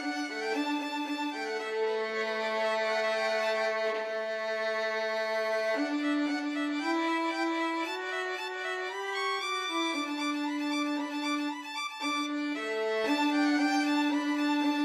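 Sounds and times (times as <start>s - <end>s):
violin trio playing: 0.0s - 14.8s.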